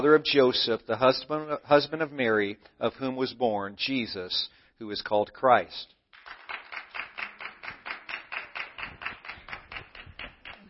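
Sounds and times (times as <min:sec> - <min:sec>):
speech: 0:00.0 - 0:06.0
rhythmic audience clapping: 0:06.1 - 0:10.6.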